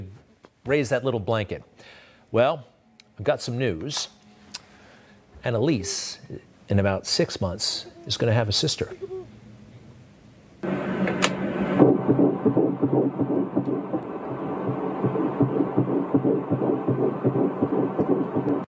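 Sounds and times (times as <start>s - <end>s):
low hiss: 0.0s - 18.7s
speech: 0.7s - 4.2s, 5.4s - 9.4s
fetal heartbeat on an ultrasound monitor: 10.6s - 18.7s
static crackle: 10.6s - 18.7s.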